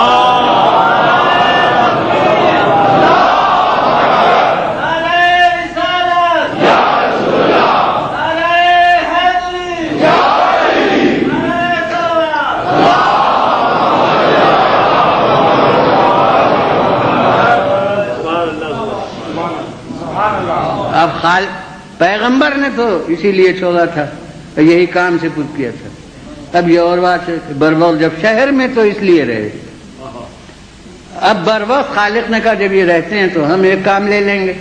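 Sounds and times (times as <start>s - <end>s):
large crowd chanting slogans at a religious gathering: 0.0s - 4.8s, 6.4s - 8.2s, 9.9s - 11.5s, 12.6s - 19.4s
crowd noise: 0.0s - 8.3s, 9.0s - 22.0s
speech: 22.8s - 25.9s, 26.5s - 29.6s, 31.2s - 34.5s.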